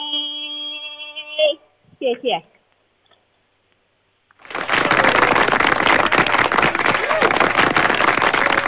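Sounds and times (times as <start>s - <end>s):
speech: 2.1s - 2.6s
audience applauding: 4.4s - 8.6s.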